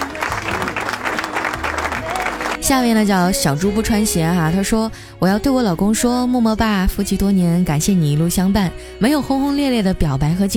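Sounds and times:
audience applause: 0.0 - 2.9
speech: 2.6 - 10.5.

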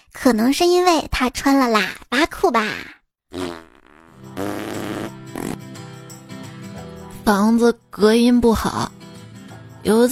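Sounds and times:
speech: 0.2 - 3.7, 7.3 - 9.0, 9.8 - 10.1
loud fart: 3.3 - 5.8.

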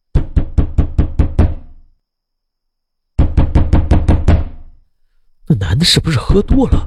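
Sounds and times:
loud heavy knocking on a door: 0.1 - 1.7, 3.2 - 4.7, 6.4 - 6.8
speech: 5.6 - 6.8.

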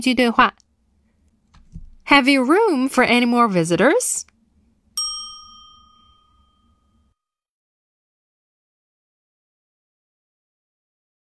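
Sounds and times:
speech: 0.0 - 0.6, 2.1 - 4.3
bright metallic ding chime: 5.0 - 7.3.

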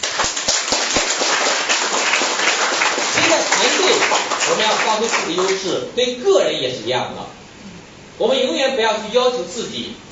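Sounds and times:
crowd applauding: 0.0 - 5.8
speech: 4.5 - 7.4, 8.2 - 10.0.

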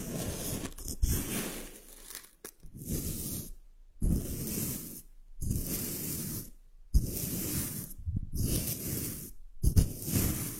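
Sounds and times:
powered sand trigger sand rustling and hissing: 0.0 - 10.5
crackles: 1.5 - 2.6.

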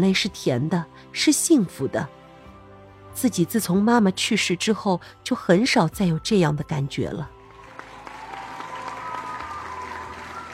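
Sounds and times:
speech: 0.0 - 2.2, 3.2 - 7.4
audience applauding and cheering: 7.4 - 10.5.

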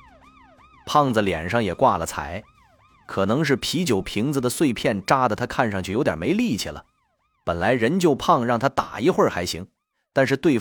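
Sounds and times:
police car siren: 0.0 - 8.5
speech: 0.9 - 2.5, 3.1 - 10.5.

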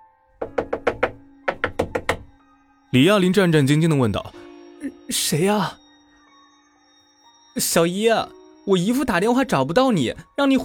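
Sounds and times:
rapid knocking on a wooden door: 0.4 - 2.4
speech: 2.9 - 4.4, 5.1 - 5.8, 7.6 - 10.6.

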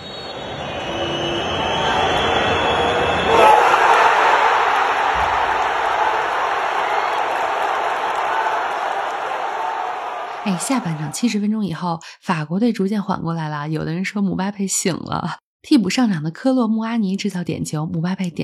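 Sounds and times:
Argentine football fans roaring and chanting in stadium: 0.0 - 11.4
speech: 10.6 - 18.4.

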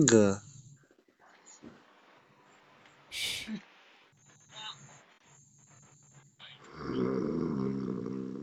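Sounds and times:
speech: 0.0 - 0.4
person snoring: 6.7 - 8.4.

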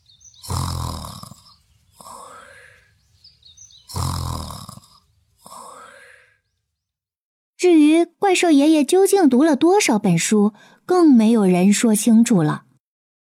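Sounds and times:
loud exaggerated snoring: 0.4 - 2.8, 3.8 - 6.4
speech: 7.6 - 12.6.

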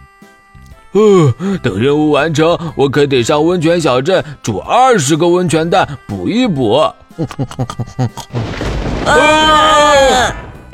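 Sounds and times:
speech: 0.9 - 10.5
laughter: 7.2 - 8.4
thunder crack: 8.3 - 10.6
lightning strike: 8.4 - 10.6.

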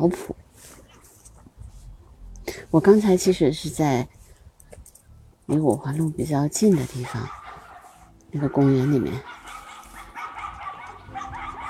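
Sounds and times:
speech: 0.0 - 0.8, 2.5 - 4.2, 5.5 - 7.4, 8.3 - 9.4
dogs barking: 6.7 - 11.6
whining yelps of dogs: 7.0 - 8.1, 9.2 - 11.6.

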